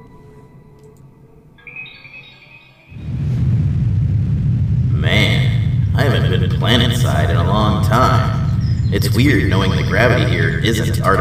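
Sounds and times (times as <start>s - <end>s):
rocket thin high whine with layered tones: 1.6s - 11.1s
rocket landing deep rumbling roar: 2.9s - 11.1s
speech: 8.9s - 11.1s.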